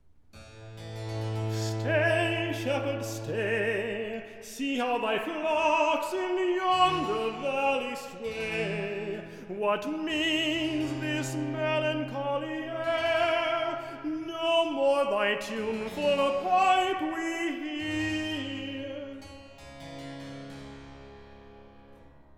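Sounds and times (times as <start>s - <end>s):
person singing recitative: 1.5s - 19.2s.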